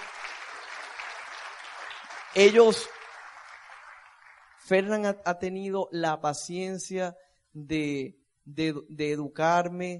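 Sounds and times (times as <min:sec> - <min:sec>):
audience applause: 0:00.0 - 0:04.8
speech: 0:02.3 - 0:03.0, 0:04.7 - 0:09.9.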